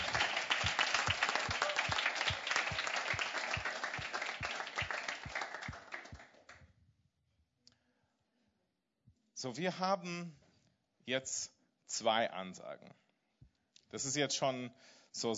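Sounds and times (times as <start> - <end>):
crowd applauding: 0.0 - 6.6
speech: 9.4 - 10.4, 11.1 - 13.0, 13.9 - 15.3.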